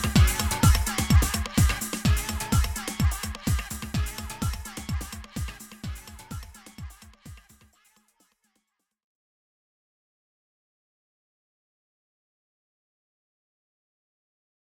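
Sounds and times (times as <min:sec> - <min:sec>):
trance music: 0:00.0 - 0:07.6.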